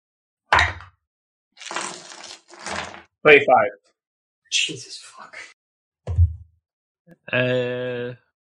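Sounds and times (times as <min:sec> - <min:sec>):
dice rolling: 0:01.6 - 0:03.0
speech: 0:03.2 - 0:03.9, 0:04.5 - 0:05.6, 0:07.3 - 0:08.2.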